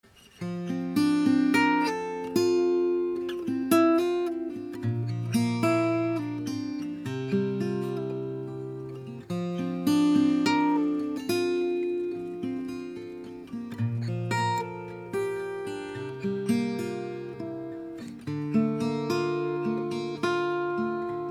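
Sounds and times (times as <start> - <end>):
guitar picking: 0.1 - 21.2.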